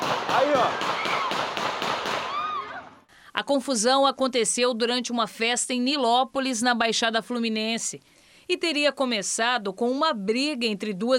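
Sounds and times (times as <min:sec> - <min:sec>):
gunshots fired in a crowded square: 0:00.0 - 0:02.6
speech: 0:00.4 - 0:01.0, 0:03.5 - 0:11.1.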